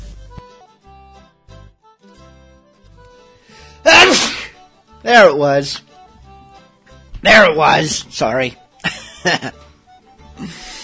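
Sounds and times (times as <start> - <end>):
sneeze: 3.9 - 4.6
speech: 5.0 - 5.9, 7.2 - 9.6
laughter: 8.8 - 9.6.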